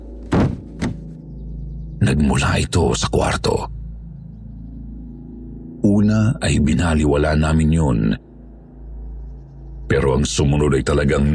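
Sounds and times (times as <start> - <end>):
heavy object falling on wooden floor: 0.2 - 1.1
speech: 2.1 - 3.8, 6.2 - 8.3, 10.2 - 11.3.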